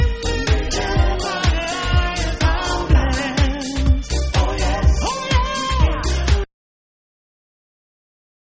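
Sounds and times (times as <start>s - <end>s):
vocal mix music: 0.0s - 6.5s.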